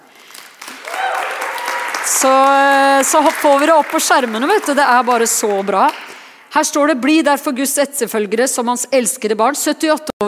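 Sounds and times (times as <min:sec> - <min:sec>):
audience applause: 0:00.0 - 0:06.4
speech: 0:02.0 - 0:10.2.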